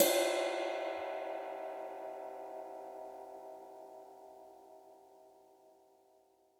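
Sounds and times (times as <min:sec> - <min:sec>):
ride cymbal: 0:00.0 - 0:02.5.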